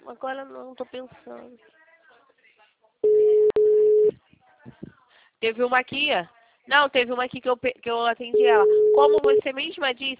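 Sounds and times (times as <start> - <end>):
speech: 0.1 - 1.8, 5.4 - 10.1
telephone busy signal: 3.0 - 4.1, 8.4 - 9.4.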